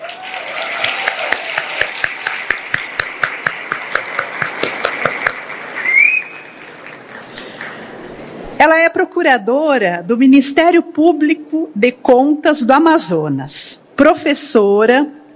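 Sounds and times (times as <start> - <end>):
audience applause: 0.0 - 8.2
high-pitched whistling tone: 5.8 - 6.5
speech: 8.9 - 15.2.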